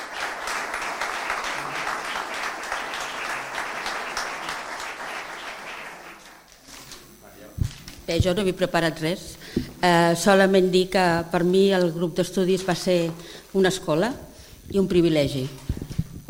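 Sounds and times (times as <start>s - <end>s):
audience applause: 0.0s - 6.5s
speech: 8.1s - 15.6s.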